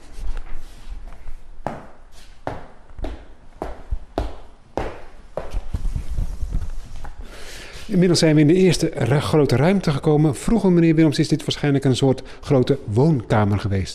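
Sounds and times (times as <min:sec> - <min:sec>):
faint shuffling: 0:00.0 - 0:02.5, 0:03.1 - 0:08.4
footsteps of heel strikes on a firm floor walking through a house: 0:00.0 - 0:07.2
speech: 0:07.9 - 0:13.9.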